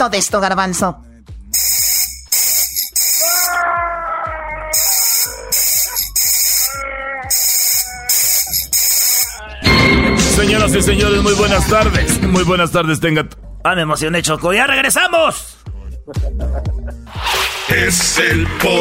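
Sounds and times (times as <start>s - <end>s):
speech: 0.0s - 1.9s, 10.4s - 18.7s
squeezed screaming squeeze toy: 2.4s - 9.4s.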